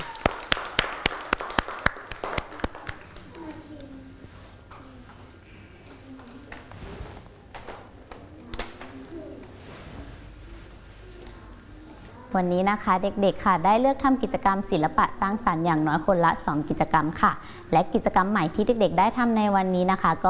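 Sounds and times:
children clapping: 0.0 - 3.4
speech: 12.4 - 20.2.

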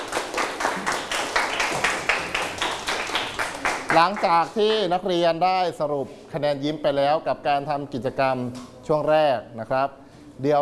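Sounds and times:
classroom clapping: 0.0 - 4.9
speech: 4.0 - 10.5.

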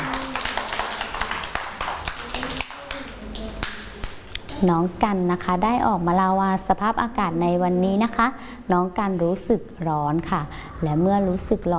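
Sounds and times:
children clapping hands: 0.0 - 4.6
speech: 4.6 - 11.7.

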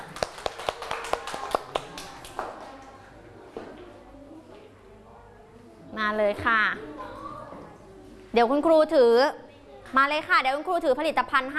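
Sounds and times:
classroom clapping for a student: 0.0 - 2.9
speech: 6.1 - 6.9, 8.4 - 11.5.

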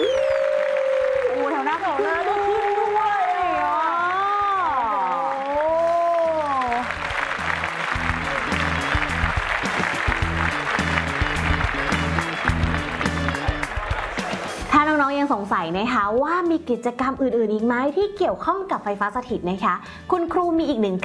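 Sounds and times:
audience cheering and applauding: 0.0 - 14.7
speech: 15.7 - 21.0.

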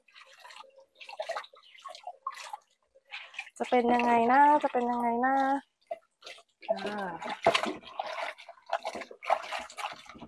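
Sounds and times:
water sloshing and dripping as a dyed item is rinsed: 0.0 - 10.2
speech: 3.6 - 5.7, 6.7 - 8.0.

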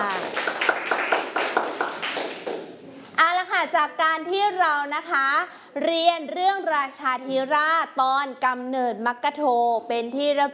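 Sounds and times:
children clapping: 0.0 - 2.8
speech: 3.8 - 10.5.

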